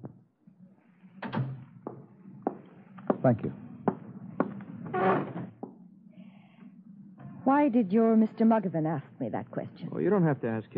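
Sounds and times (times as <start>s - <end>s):
soft knock: 1.9s - 4.6s
speech: 3.2s - 3.6s, 7.6s - 10.7s
door shutting: 4.8s - 5.6s.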